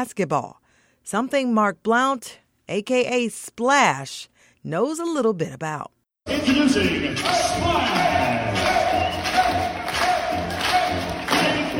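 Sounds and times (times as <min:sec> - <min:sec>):
speech: 0:00.0 - 0:09.1
crowd shouting and cheering at a basketball court: 0:06.3 - 0:11.7.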